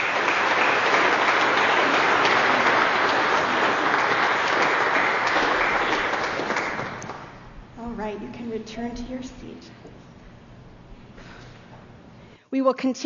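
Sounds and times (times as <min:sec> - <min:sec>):
audience applauding: 0:00.0 - 0:07.4
speech: 0:08.6 - 0:10.1, 0:12.5 - 0:13.0.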